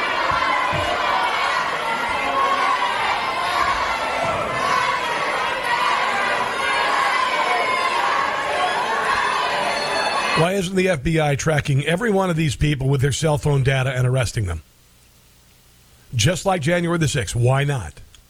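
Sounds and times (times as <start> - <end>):
crowd shouting and chattering in a legislative chamber: 0.0 - 10.7
speech: 10.5 - 14.7, 16.1 - 18.1.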